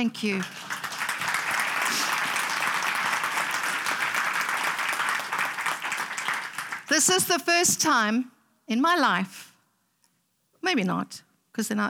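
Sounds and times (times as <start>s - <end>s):
speech: 0.0s - 0.6s, 6.9s - 9.4s, 10.6s - 11.8s
audience applause and cheering: 0.4s - 7.1s.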